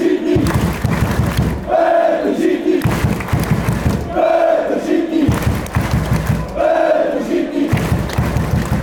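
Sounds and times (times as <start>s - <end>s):
people chanting: 0.0s - 8.8s.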